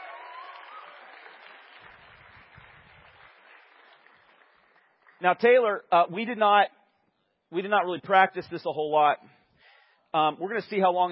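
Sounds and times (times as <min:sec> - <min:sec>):
audience applause: 0:00.0 - 0:05.2
speech: 0:05.2 - 0:06.8, 0:07.5 - 0:09.4, 0:10.1 - 0:11.0.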